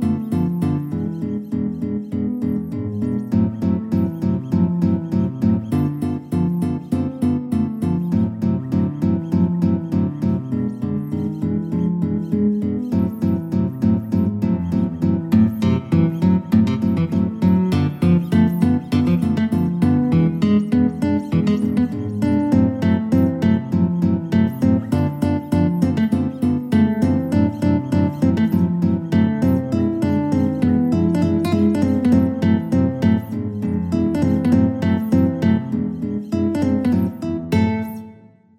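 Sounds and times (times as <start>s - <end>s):
guitar ensemble playing: 0.0s - 38.5s.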